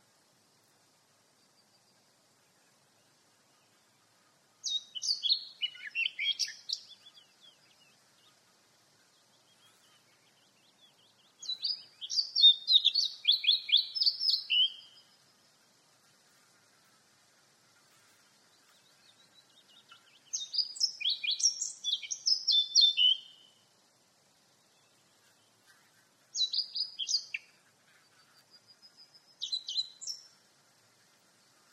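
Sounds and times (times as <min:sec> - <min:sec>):
faint steady hiss: 0:00.0 - 0:31.7
Eurasian blackcap singing: 0:03.6 - 0:15.4, 0:18.2 - 0:23.6, 0:24.7 - 0:30.4.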